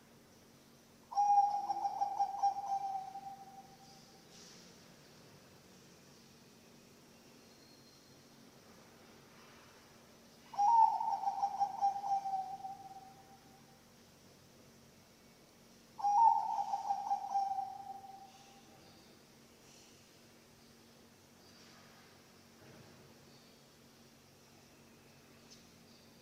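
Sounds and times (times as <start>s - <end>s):
zebra dove cooing: 1.1s - 3.7s, 10.5s - 13.1s, 16.0s - 18.5s.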